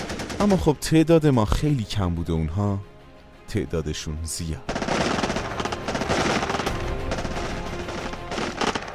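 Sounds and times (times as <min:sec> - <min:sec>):
gunfire from trenches: 0:00.0 - 0:00.6, 0:04.7 - 0:08.9
speech: 0:00.4 - 0:02.9, 0:03.5 - 0:04.8.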